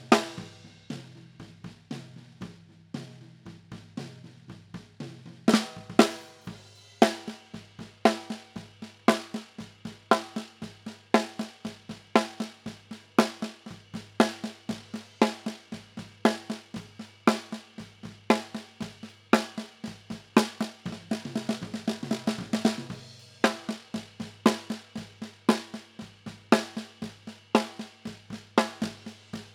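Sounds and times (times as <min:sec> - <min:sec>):
snare drum bottom: 0:00.0 - 0:29.5.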